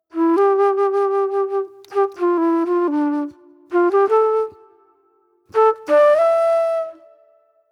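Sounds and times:
sweet soul flute: 0.0 - 7.7.

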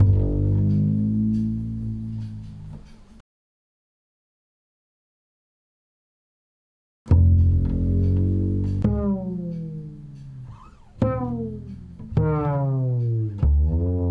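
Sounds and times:
bass line in G: 0.0 - 3.2, 7.1 - 14.0.

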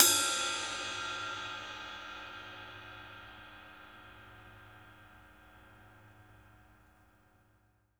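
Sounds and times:
ride cymbal: 0.0 - 5.5.

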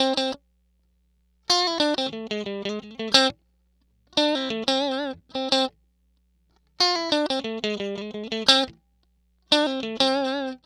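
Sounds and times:
electric guitar: 0.0 - 0.4, 1.5 - 3.4, 4.1 - 5.8, 6.8 - 8.8, 9.5 - 10.6.

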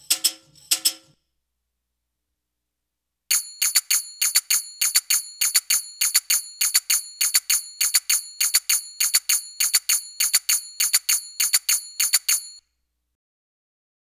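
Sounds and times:
Arabic rhythm percussion: 3.3 - 12.6.

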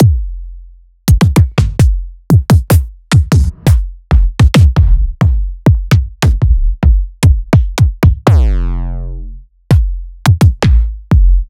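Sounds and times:
kick drums: 0.0 - 0.4, 1.1 - 8.6, 9.7 - 11.4.

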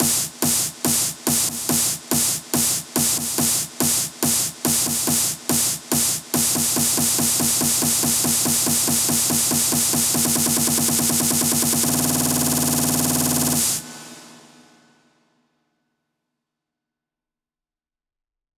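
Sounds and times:
PWM synth kit snare drum roll: 0.0 - 14.8.

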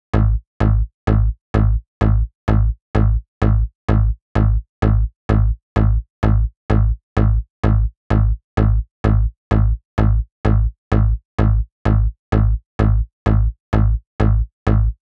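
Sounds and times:
drop bass: 0.1 - 15.0.

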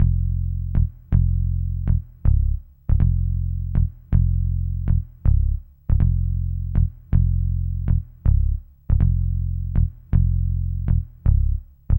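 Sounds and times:
hip hop and RnB bass in F: 0.0 - 11.9.

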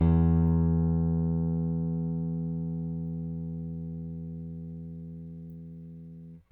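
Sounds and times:
Rickenbacker bass played with thumb: 0.0 - 6.4.

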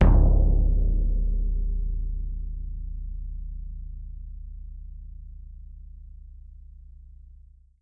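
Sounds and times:
bass drum percussion: 0.0 - 6.2.

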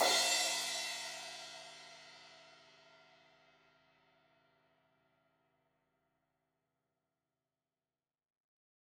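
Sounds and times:
16-inch crash cymbal hit on the edge: 0.0 - 1.3.

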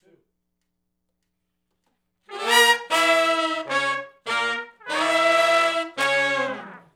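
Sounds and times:
R&B horn riff in C sharp in unison: 2.3 - 6.9.

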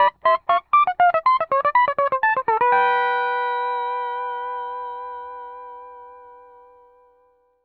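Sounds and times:
country music loop at 120 BPM: 0.0 - 5.0.

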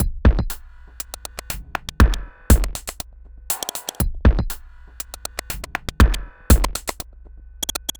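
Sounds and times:
hi-hat beats: 0.0 - 7.9.

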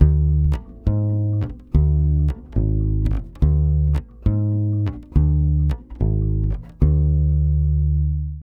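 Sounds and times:
140 bass D diminished Brazil bossa: 0.0 - 8.4.

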